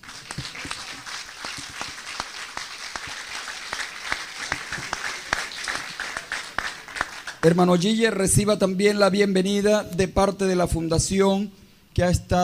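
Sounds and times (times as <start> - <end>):
audience applause: 0.0 - 7.6
speech: 7.4 - 12.4.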